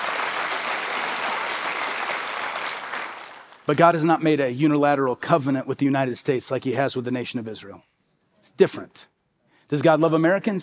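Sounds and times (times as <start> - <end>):
audience clapping: 0.0 - 3.9
speech: 3.7 - 7.9, 8.5 - 9.1, 9.7 - 10.6.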